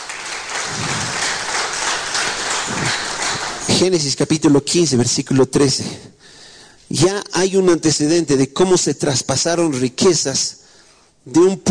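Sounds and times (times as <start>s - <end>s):
audience applauding: 0.0s - 4.1s
speech: 3.8s - 6.2s, 6.9s - 10.6s, 11.2s - 11.6s.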